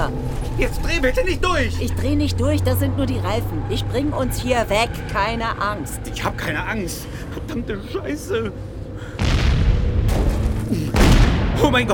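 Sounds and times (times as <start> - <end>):
speech: 0.6 - 8.7, 11.6 - 11.9
gas station explosions booming: 9.2 - 11.9.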